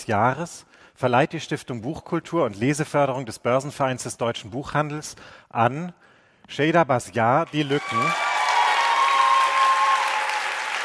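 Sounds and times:
speech: 0.0 - 8.3
audience applause at award ceremony: 7.6 - 10.8.

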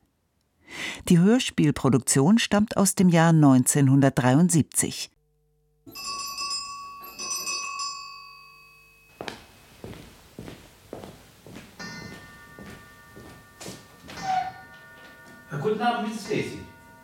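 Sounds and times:
speech: 1.1 - 5.1
faint bell-like tone: 5.9 - 9.2, 11.8 - 17.0
clock striking the hour: 5.9 - 9.7, 11.6 - 17.0
footsteps: 9.1 - 15.7.

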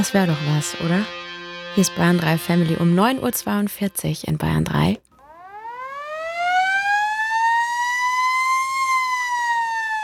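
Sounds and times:
speech: 0.0 - 1.2, 1.8 - 5.0
fire engine siren: 5.2 - 10.0.

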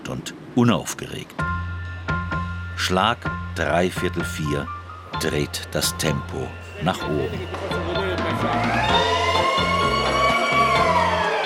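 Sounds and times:
speech: 0.1 - 1.6, 2.8 - 9.0
busy noise: 4.8 - 10.7
siren wailing: 7.0 - 11.4.

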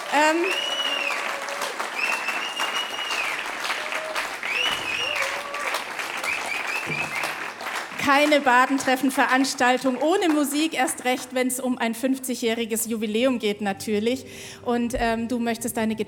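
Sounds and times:
audience applause welcoming a performer: 0.0 - 11.2
speech: 0.1 - 0.7, 8.1 - 16.0.

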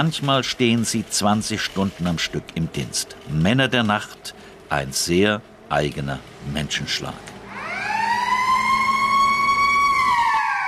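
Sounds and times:
speech: 0.0 - 7.3
siren marking the market opening: 7.5 - 10.6.

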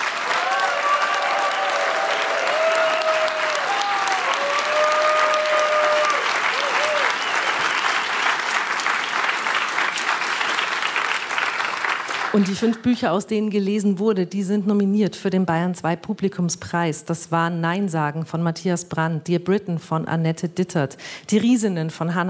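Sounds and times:
audience applause: 0.0 - 12.9
speech: 12.4 - 22.2.

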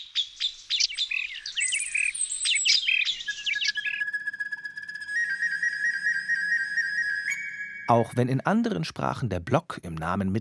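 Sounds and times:
recorder flute imitating birdsong: 0.0 - 8.3
speech: 7.9 - 10.3.

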